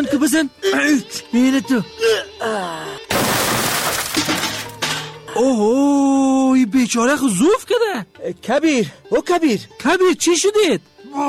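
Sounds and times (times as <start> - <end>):
speech: 0.0 - 2.9, 5.4 - 11.2
door being broken down: 3.1 - 5.2.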